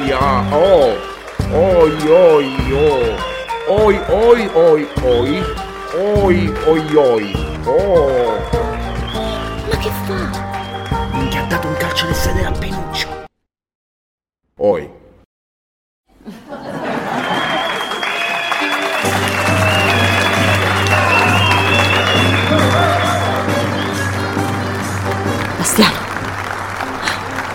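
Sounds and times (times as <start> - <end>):
crowd applause: 0.0 - 11.5, 16.5 - 27.5
speech: 0.1 - 8.6, 11.2 - 13.1, 14.6 - 15.0
laughter: 16.2 - 18.3, 27.0 - 27.5.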